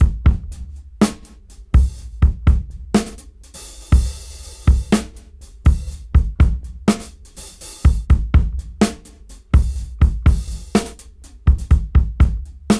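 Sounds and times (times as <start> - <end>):
funk music at 61 BPM: 0.0 - 12.7.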